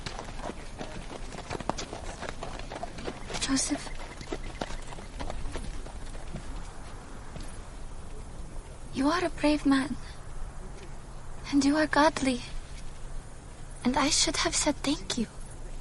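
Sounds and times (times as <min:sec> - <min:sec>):
donkey hooves clip-clopping while walking: 0:00.0 - 0:08.9
speech: 0:03.5 - 0:04.0, 0:09.0 - 0:10.0, 0:11.5 - 0:12.5, 0:13.8 - 0:15.4.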